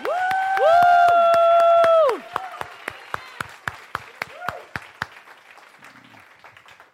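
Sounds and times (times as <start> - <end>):
audience clapping: 0.0 - 6.9.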